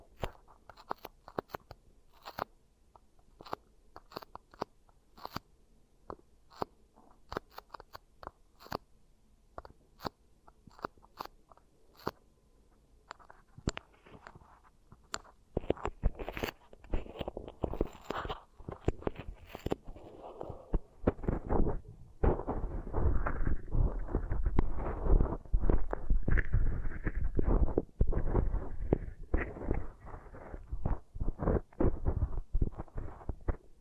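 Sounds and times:
beeswax crackling and squishing: 0.0s - 5.5s, 6.5s - 8.9s, 13.1s - 33.7s.

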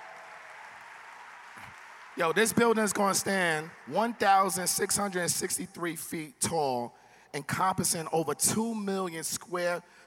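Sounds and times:
crowd applauding: 0.0s - 5.3s
speech: 1.6s - 10.0s.

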